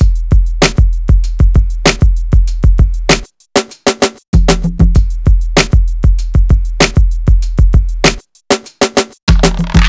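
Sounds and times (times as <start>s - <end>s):
East Coast hip hop drum beat: 0.0s - 9.8s.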